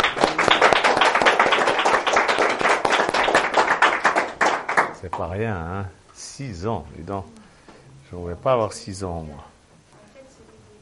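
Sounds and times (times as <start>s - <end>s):
audience clapping: 0.0s - 5.4s
speech: 5.2s - 7.4s, 8.1s - 9.5s.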